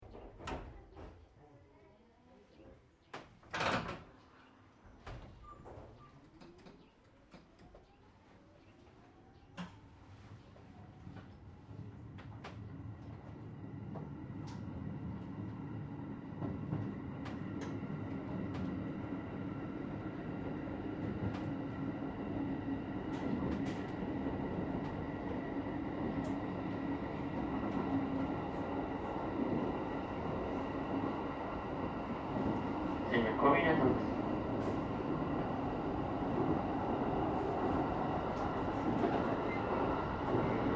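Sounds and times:
JR regional Aomori local train starting up at driver's position: 0:11.1 - 0:40.7.

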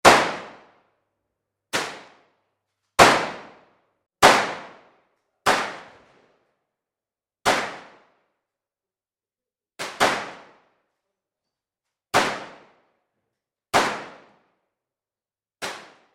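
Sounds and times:
various pistol shots indoors: 0:00.0 - 0:00.8, 0:03.0 - 0:06.1, 0:07.4 - 0:08.2, 0:09.8 - 0:10.7, 0:12.1 - 0:12.8, 0:13.7 - 0:14.5.

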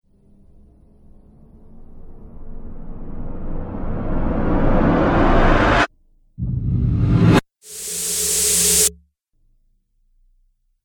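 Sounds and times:
cinematic riser: 0:00.5 - 0:09.0.

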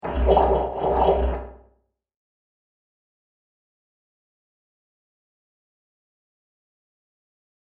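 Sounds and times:
strange underwater sounds: 0:00.0 - 0:01.8.

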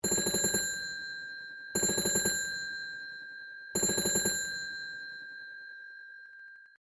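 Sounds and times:
wooden automatic dialing wall telephone ringing long: 0:00.0 - 0:06.7.

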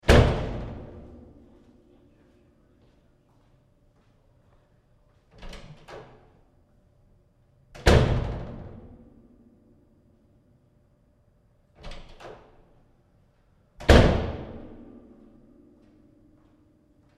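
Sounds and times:
heavy prison cell door opening and closing: 0:00.0 - 0:01.8, 0:05.3 - 0:06.6, 0:07.7 - 0:09.4, 0:11.7 - 0:16.3.

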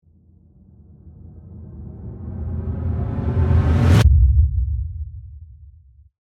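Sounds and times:
ramp up to low-frequency effects rumble: 0:00.1 - 0:06.0.

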